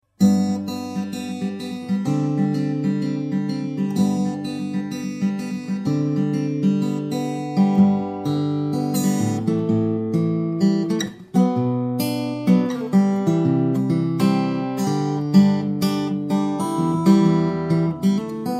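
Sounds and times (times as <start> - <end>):
fingerstyle guitar: 0.0 - 18.5.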